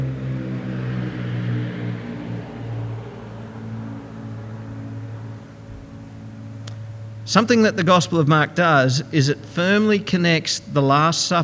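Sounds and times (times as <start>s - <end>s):
airplane flying overhead: 0.0s - 11.4s
speech: 7.3s - 11.4s.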